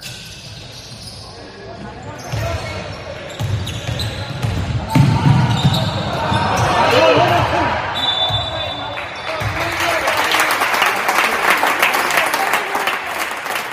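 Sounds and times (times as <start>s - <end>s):
squeaky sneakers: 0.0s - 9.7s
whistle-like tone: 8.0s - 8.8s
crowd applause after a basketball play: 8.6s - 13.7s.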